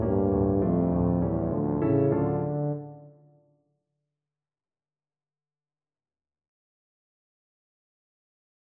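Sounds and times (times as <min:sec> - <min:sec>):
tuba playing: 0:00.0 - 0:03.0.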